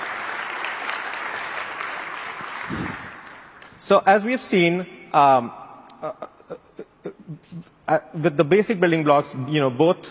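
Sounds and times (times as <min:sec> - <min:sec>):
audience applause: 0:00.0 - 0:03.7
speech: 0:02.7 - 0:03.0, 0:03.8 - 0:06.6, 0:07.4 - 0:10.0.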